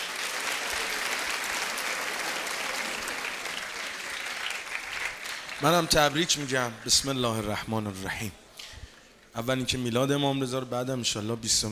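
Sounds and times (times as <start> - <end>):
audience clapping at a religious gathering celebrating Imam Reza's birth: 0.0 - 7.7
speech: 5.6 - 8.4, 9.4 - 11.7.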